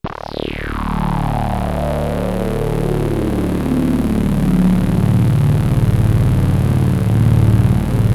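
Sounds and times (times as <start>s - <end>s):
synth waves: 1.1s - 8.1s.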